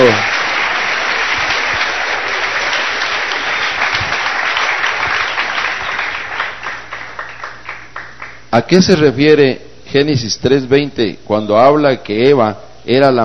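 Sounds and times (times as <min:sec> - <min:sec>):
church congregation applauding during a religious service: 0:00.0 - 0:08.9
speech: 0:08.6 - 0:13.2.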